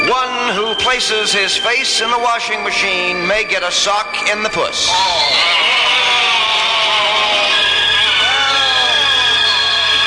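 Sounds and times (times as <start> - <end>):
speech: 0.1 - 6.5
crowd groaning: 4.8 - 10.0.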